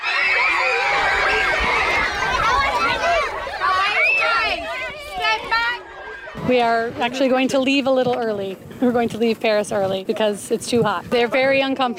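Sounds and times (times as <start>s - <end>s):
crowd of schoolchildren shrieking and squealing while sprayed with water: 0.0s - 6.4s
speech: 6.5s - 11.9s.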